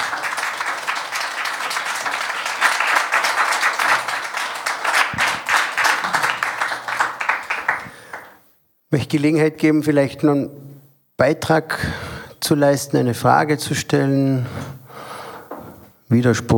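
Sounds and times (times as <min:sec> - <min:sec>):
audience applause: 0:00.0 - 0:08.4
speech: 0:08.9 - 0:10.6, 0:11.2 - 0:14.8, 0:16.1 - 0:16.5.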